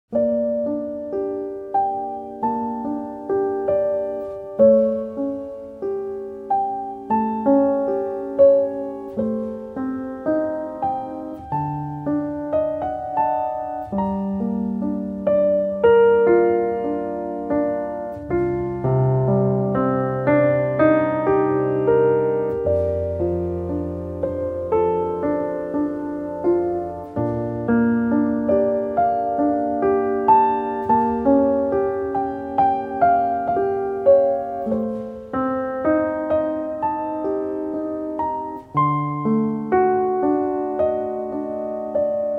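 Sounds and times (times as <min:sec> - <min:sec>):
piano music: 0:00.1 - 0:42.3.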